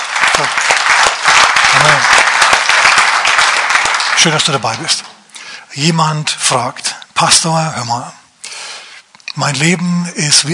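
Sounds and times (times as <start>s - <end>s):
audience applause: 0.0s - 5.0s
speech: 0.4s - 0.7s, 4.2s - 5.1s, 5.8s - 8.2s, 9.4s - 10.5s.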